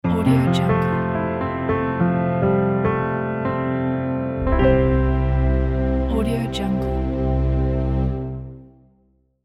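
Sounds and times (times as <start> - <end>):
piano logo jingle: 0.0 - 8.7.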